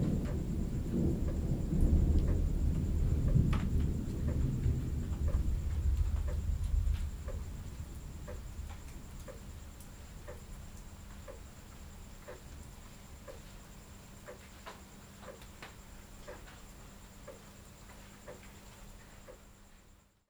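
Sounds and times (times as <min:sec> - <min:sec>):
rainstorm: 0:00.0 - 0:20.1.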